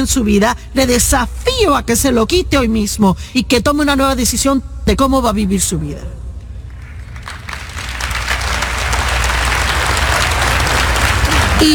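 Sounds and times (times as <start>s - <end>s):
speech: 0.0s - 6.2s, 11.6s - 11.7s
crowd applauding steadily: 6.7s - 11.7s.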